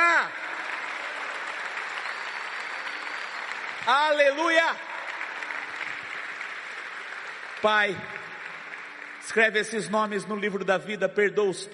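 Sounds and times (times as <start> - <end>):
audience applause: 0.0 - 10.7
speech: 3.9 - 4.9, 7.6 - 8.2, 9.3 - 11.7.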